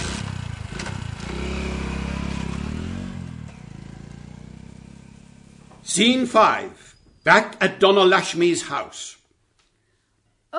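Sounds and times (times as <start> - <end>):
car driving off fast with engine revving: 0.0 - 6.4
speech: 5.9 - 9.2.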